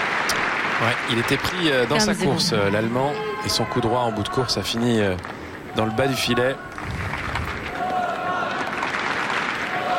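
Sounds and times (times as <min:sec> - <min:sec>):
tennis crowd on Court Philippe-Chatrier cheering and clapping: 0:00.0 - 0:03.7, 0:06.6 - 0:09.9
speech: 0:00.8 - 0:07.0.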